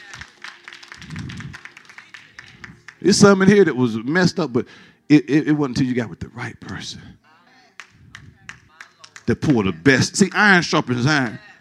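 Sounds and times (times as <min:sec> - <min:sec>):
audience clapping: 0:00.0 - 0:03.2, 0:07.8 - 0:10.7
speech: 0:03.0 - 0:07.3, 0:09.3 - 0:11.5.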